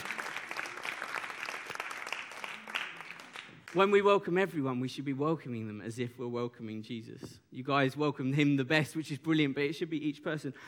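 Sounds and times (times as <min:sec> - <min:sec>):
audience clapping: 0:00.0 - 0:04.0
speech: 0:03.7 - 0:10.6.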